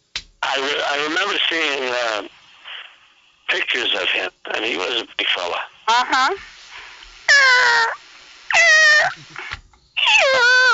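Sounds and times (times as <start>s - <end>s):
speech: 0.5s - 2.4s, 3.5s - 6.5s
chicken squeaking for food: 7.3s - 9.2s, 10.0s - 10.7s.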